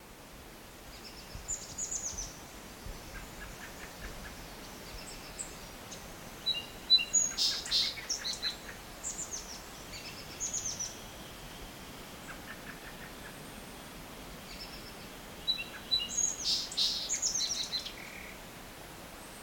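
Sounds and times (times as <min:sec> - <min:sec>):
rain: 0:00.0 - 0:19.4.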